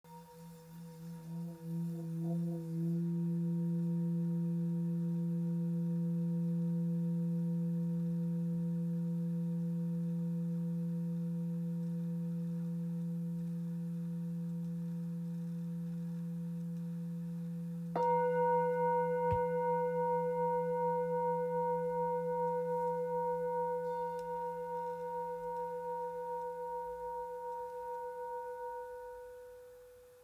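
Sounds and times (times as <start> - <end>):
Tibetan singing bowl tuned to F: 0.0 - 30.2.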